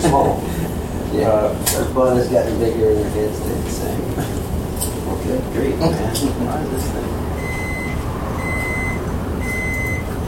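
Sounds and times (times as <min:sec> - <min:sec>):
speech: 0:00.0 - 0:04.5, 0:05.1 - 0:07.3
computer BIOS beep code: 0:07.4 - 0:10.1.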